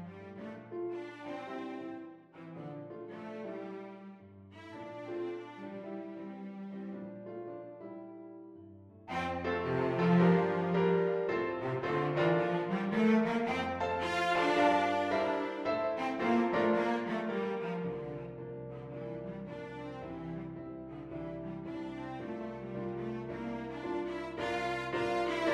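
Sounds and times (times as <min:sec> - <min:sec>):
double bass cello melody: 0:09.1 - 0:25.5.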